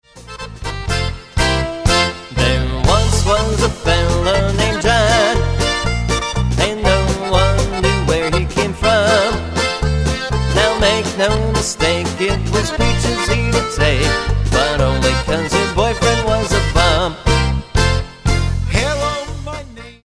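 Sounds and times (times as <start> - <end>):
polka music: 0.0 - 20.0.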